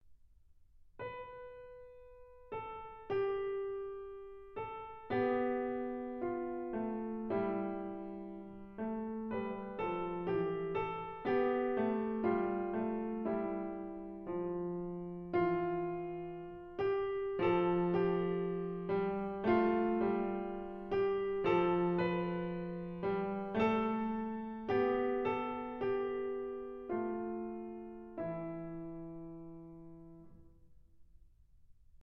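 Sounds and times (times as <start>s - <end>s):
piano canon at the octave: 1.0s - 30.7s.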